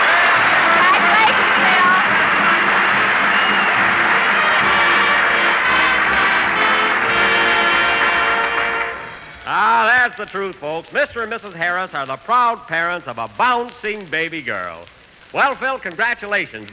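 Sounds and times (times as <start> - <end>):
studio audience applauding: 0.0 - 9.6
speech: 10.2 - 16.7.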